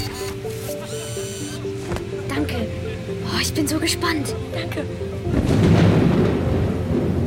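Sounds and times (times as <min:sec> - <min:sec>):
artificially made rain from a technology demonstration heard under an umbrella: 0:01.6 - 0:07.2
speech: 0:03.4 - 0:05.8
thunder-like rumble: 0:05.2 - 0:07.2.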